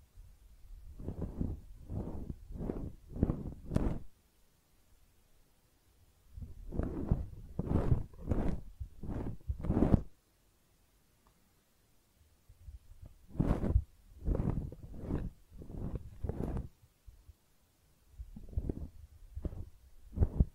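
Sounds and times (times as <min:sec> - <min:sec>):
ear cleaning rubbing and scratching: 0:01.0 - 0:04.1, 0:06.5 - 0:10.1, 0:13.3 - 0:16.7, 0:18.4 - 0:20.5.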